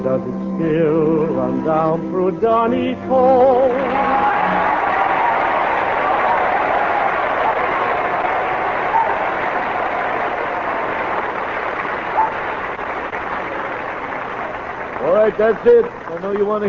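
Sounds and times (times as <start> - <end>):
speech: 0.2 - 4.3, 15.3 - 16.6
audience applause: 3.6 - 16.6.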